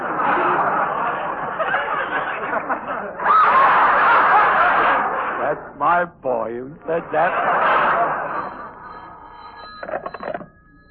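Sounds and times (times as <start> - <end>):
laughter: 0.0 - 5.8, 6.8 - 9.0
speech: 6.0 - 8.6
telephone bell ringing: 7.7 - 10.8.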